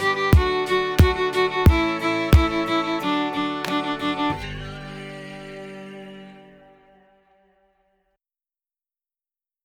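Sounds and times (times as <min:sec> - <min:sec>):
reversed violin tucka: 0:00.0 - 0:07.0.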